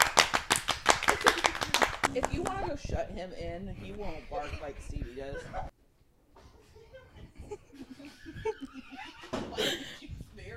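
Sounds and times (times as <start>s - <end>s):
hand clapping applause: 0.0s - 2.7s
laughter: 1.0s - 1.8s, 4.3s - 5.7s, 6.4s - 10.3s
speech: 2.1s - 5.7s.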